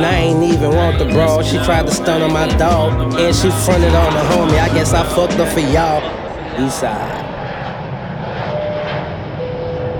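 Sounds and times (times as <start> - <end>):
speech: 0.8 - 7.2
airplane engine during initial descent: 4.9 - 9.9.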